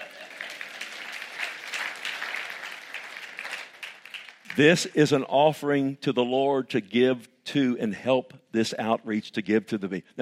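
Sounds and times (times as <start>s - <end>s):
audience applauding: 0.0s - 4.8s
speech: 4.5s - 10.2s.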